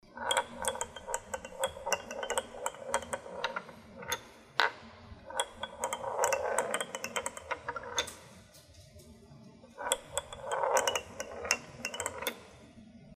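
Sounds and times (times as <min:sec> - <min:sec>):
pinball machine: 0:00.0 - 0:08.4, 0:09.8 - 0:12.7.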